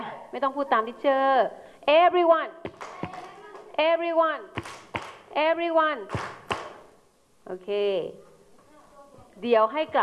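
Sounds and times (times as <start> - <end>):
speech: 0.3 - 2.7, 3.8 - 4.7, 5.3 - 6.4, 7.5 - 8.2, 9.4 - 10.0
class clapping hands: 2.7 - 3.7, 4.6 - 5.2, 6.1 - 6.8.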